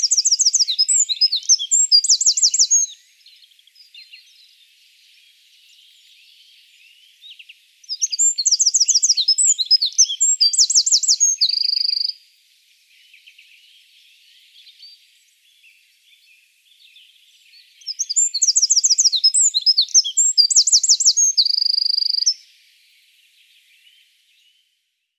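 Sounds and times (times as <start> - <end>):
Eurasian wren song: 0.0 - 4.5, 5.6 - 12.2, 17.6 - 22.5.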